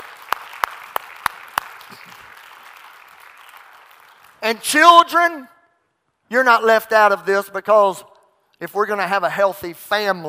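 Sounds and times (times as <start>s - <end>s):
audience clapping: 0.0s - 4.7s
speech: 4.5s - 5.5s, 6.3s - 10.2s.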